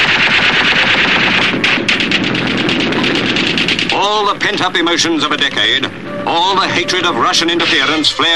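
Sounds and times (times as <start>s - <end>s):
machine gun fire in street battle: 0.0s - 4.8s
speech: 4.4s - 8.3s.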